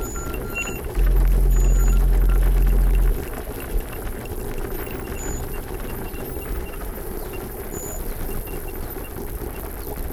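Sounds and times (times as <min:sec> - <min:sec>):
ski chairlift machinery rumble and rattle: 0:01.0 - 0:03.3
loud deep hum: 0:01.0 - 0:03.5.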